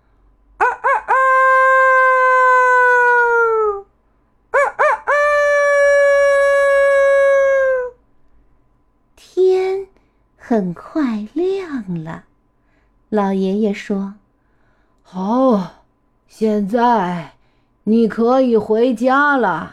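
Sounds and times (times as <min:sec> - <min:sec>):
rooster crowing: 0:00.6 - 0:03.8, 0:04.5 - 0:08.0
speech: 0:10.6 - 0:12.3, 0:13.1 - 0:14.2, 0:15.1 - 0:19.7.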